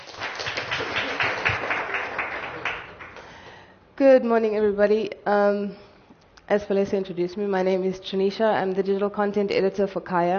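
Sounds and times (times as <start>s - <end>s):
audience applause: 0.0s - 3.4s
speech: 4.0s - 5.8s, 6.5s - 10.3s.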